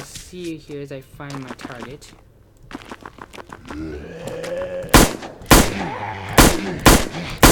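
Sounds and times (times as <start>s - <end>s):
in-game sounds: 0.0s - 7.5s
speech: 0.3s - 2.9s, 3.8s - 4.3s
Teutonic pistol shots in a video game: 4.9s - 7.5s.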